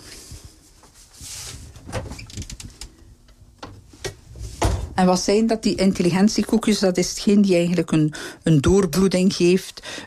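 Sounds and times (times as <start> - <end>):
refrigerator door opening and closing: 1.7 - 2.8, 3.7 - 5.0
speech: 5.0 - 10.0.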